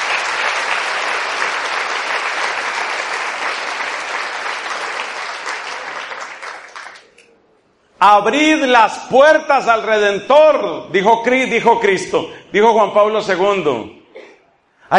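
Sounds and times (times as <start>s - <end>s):
audience applause: 0.0s - 7.2s
speech: 8.0s - 14.0s.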